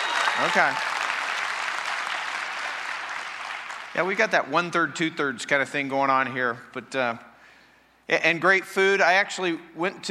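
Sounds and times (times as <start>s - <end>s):
audience clapping: 0.0s - 4.5s
speech: 0.4s - 0.9s, 4.0s - 7.3s, 8.1s - 10.0s.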